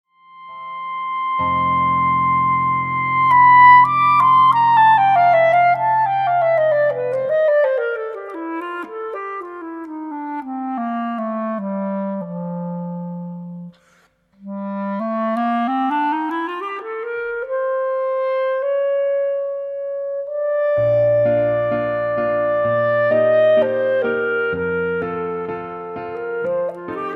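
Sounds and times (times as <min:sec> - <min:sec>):
clarinet concerto: 0:00.1 - 0:27.1.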